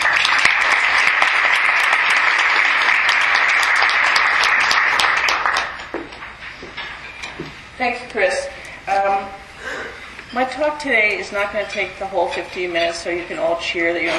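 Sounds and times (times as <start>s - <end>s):
audience applause: 0.0s - 6.0s
speech: 7.8s - 9.4s, 10.3s - 14.1s.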